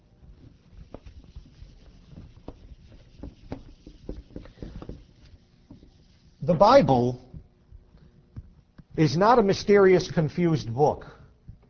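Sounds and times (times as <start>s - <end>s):
eraser wiping a board: 0.0s - 7.2s
speech: 6.5s - 7.2s, 9.0s - 11.2s.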